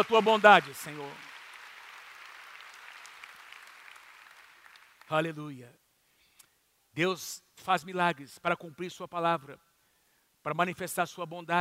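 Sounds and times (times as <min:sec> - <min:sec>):
speech: 0:00.0 - 0:01.3, 0:05.1 - 0:05.8, 0:07.0 - 0:09.7, 0:10.4 - 0:11.5
audience applause: 0:00.0 - 0:05.1.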